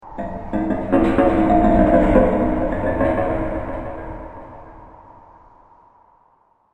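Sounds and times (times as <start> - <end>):
metal sounds: 0.0 - 5.3
wind in a scary scene: 0.0 - 6.7.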